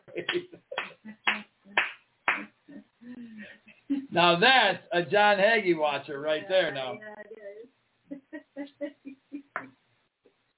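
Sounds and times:
hand clapping: 0.1 - 2.6
speech: 0.2 - 0.6, 4.2 - 7.1.

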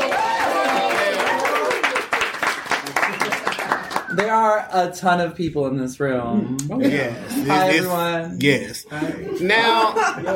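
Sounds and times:
live audience applause: 0.0 - 4.3
speech: 4.2 - 10.3
laughter: 8.9 - 10.3.

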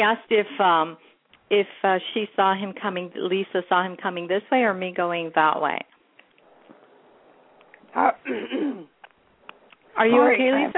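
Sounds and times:
speech: 0.0 - 5.9, 7.9 - 8.9, 10.0 - 10.7
person coughing while fighting a cold: 8.2 - 9.0.

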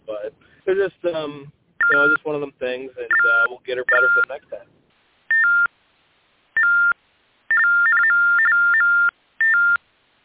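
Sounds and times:
speech: 0.7 - 4.8
fax machine tones on phone line: 1.8 - 2.2, 3.1 - 4.4, 6.6 - 9.8.

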